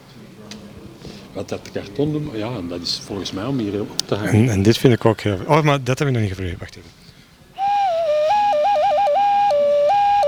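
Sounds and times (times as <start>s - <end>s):
laughter: 0.0s - 8.2s
speech: 1.3s - 7.0s
ocarina-like whistle blown through a small hole: 7.6s - 10.2s.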